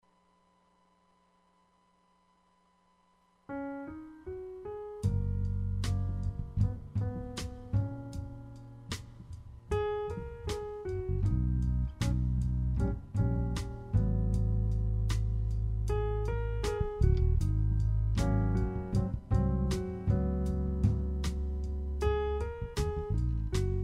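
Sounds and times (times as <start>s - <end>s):
jazz music: 5.0s - 23.8s.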